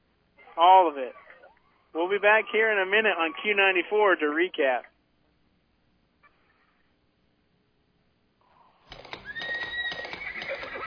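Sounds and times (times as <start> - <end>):
speech: 0.6 - 1.3, 1.9 - 4.9
horse whinnying in a radio ad for the Ozark Horse Trader: 8.5 - 10.8.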